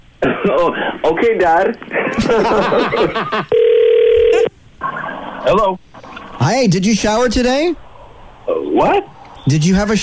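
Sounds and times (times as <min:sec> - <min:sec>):
speech: 0:00.2 - 0:03.8, 0:05.4 - 0:07.8, 0:08.5 - 0:10.0
laughter: 0:02.0 - 0:03.5
telephone ringing: 0:03.5 - 0:04.5.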